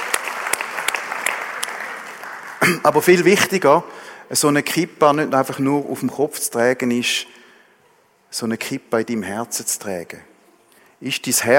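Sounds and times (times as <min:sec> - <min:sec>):
applause at a religious gathering: 0:00.0 - 0:03.3
speech: 0:02.6 - 0:07.4, 0:08.3 - 0:10.3, 0:11.0 - 0:11.5.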